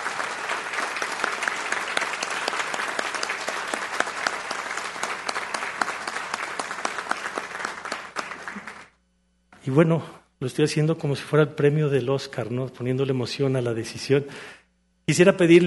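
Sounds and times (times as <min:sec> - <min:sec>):
audience applause: 0:00.0 - 0:08.9
speech: 0:09.7 - 0:15.6.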